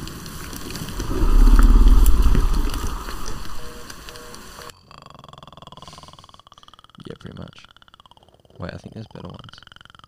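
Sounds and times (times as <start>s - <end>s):
monster growl sound effect: 0.9s - 4.1s
speech: 9.0s - 9.6s.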